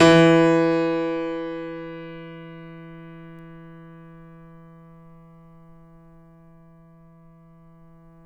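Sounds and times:
grand piano note recorded off mic: 0.0 - 4.2.

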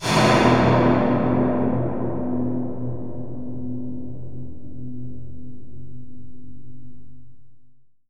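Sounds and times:
sci-fi steel sound: 0.0 - 3.5.

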